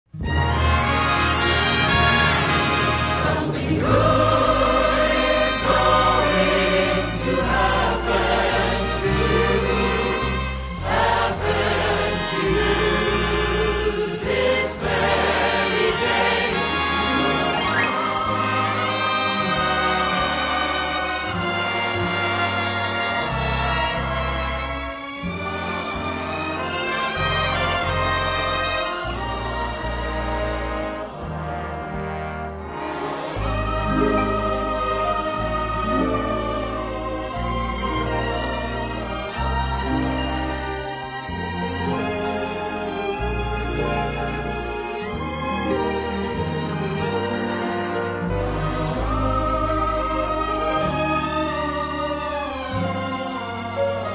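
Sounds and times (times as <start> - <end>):
band playing: 0.1 - 52.1
vocals singing: 3.0 - 22.3, 26.6 - 39.2, 48.3 - 54.1.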